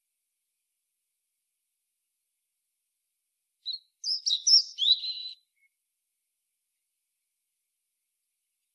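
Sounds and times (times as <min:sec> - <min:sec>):
European robin warbling: 0:04.0 - 0:05.4.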